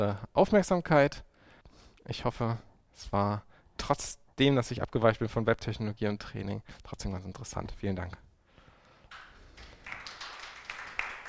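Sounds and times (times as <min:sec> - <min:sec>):
speech: 0:00.0 - 0:01.3, 0:02.1 - 0:08.2
applause from a lecture audience: 0:09.1 - 0:11.2.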